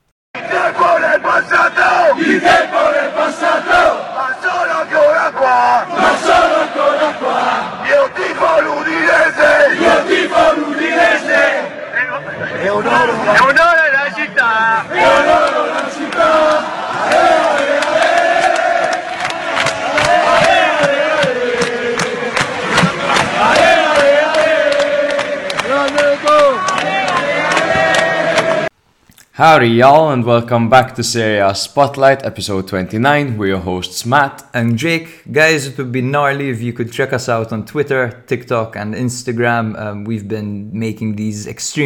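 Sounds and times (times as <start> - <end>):
large crowd of football fans chanting in a stadium: 0.4 - 28.7
speech: 29.4 - 41.8.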